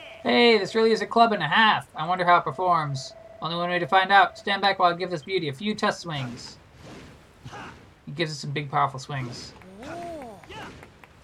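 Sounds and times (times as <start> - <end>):
speech: 0.2 - 6.6, 7.4 - 10.0
single person clapping hands: 9.6 - 11.2.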